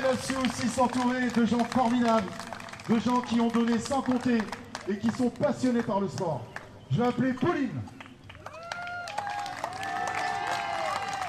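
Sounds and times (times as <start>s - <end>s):
audience applauding: 0.0s - 5.3s, 8.0s - 11.2s
speech: 0.1s - 8.0s
voices cheering and whooping: 8.5s - 11.2s.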